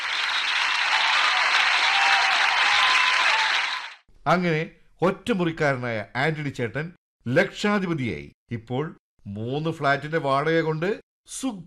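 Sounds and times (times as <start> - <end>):
audience applause: 0.0 - 4.0
speech: 4.2 - 11.6.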